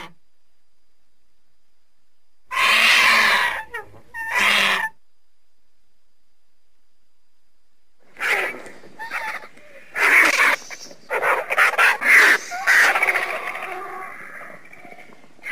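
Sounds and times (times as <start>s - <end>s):
vulture hissing screeches: 2.5s - 4.9s, 8.2s - 14.6s.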